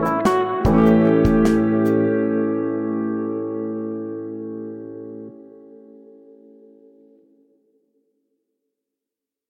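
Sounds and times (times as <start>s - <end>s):
blues music: 0.0s - 7.2s.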